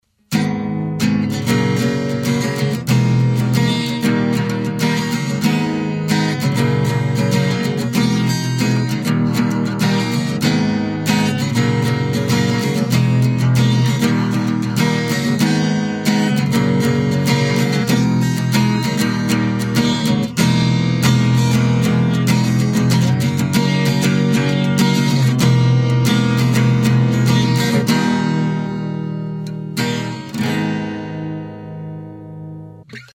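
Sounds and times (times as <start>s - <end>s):
guitar: 0.0s - 33.1s.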